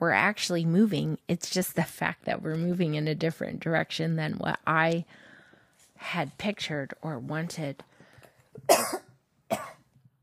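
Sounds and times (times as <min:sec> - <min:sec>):
speech: 0:00.0 - 0:05.3, 0:06.0 - 0:07.9
person with pollen allergies coughing in South Carolina's blooming season: 0:08.6 - 0:09.9.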